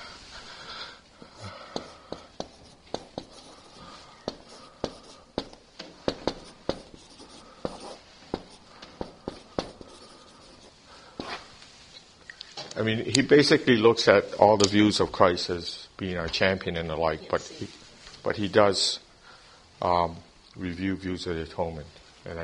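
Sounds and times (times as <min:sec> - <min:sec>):
writing on a board: 0:01.7 - 0:11.4
speech: 0:12.8 - 0:19.0, 0:19.8 - 0:22.4.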